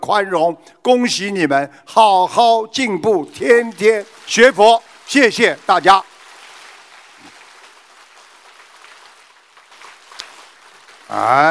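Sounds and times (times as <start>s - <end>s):
speech: 0.1s - 6.1s, 11.1s - 11.4s
crowd applause: 3.2s - 11.4s.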